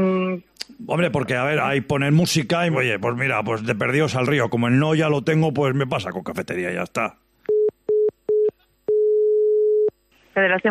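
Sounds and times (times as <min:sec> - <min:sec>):
speech: 0:00.8 - 0:07.2, 0:10.4 - 0:10.6
phone line busy tone after a call cut off: 0:07.5 - 0:09.9.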